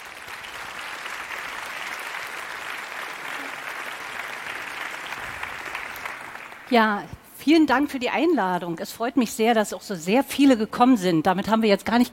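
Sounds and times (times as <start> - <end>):
audience applause: 0.0 - 6.7
speech: 6.7 - 12.1.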